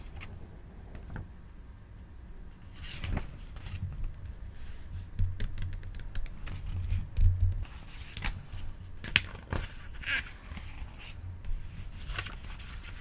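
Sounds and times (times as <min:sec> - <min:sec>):
low steady hum: 0:00.0 - 0:13.0
book pages handled and turned: 0:02.7 - 0:07.0, 0:07.6 - 0:13.0.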